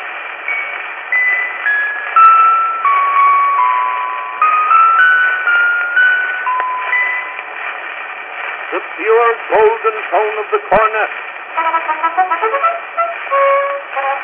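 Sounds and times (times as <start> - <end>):
orchestra bells ringing: 0.5 - 7.6
speech: 9.0 - 13.6.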